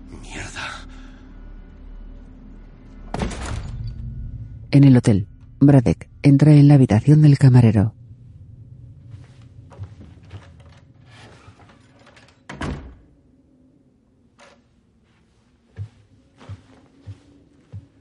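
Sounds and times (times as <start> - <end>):
speech: 4.7 - 8.0
toilet door opening: 9.2 - 13.2, 14.4 - 14.8.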